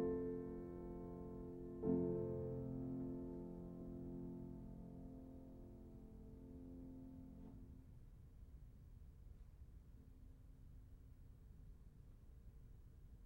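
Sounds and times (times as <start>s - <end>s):
piano etude in F major: 0.0s - 7.7s.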